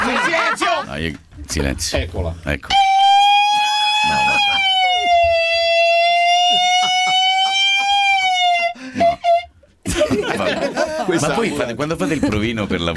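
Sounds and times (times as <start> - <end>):
laughter: 0.0 - 0.9, 3.8 - 12.9
speech: 1.0 - 3.0, 11.1 - 12.9
voice imitating an ambulance siren: 2.7 - 9.4.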